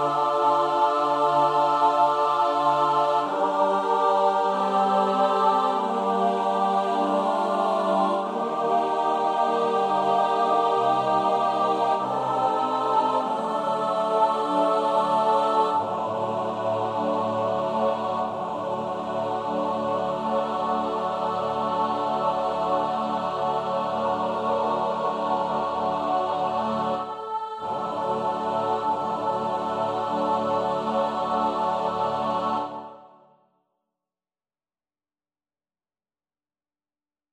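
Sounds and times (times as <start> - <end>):
SATB choir singing in English: 0.0 - 33.3.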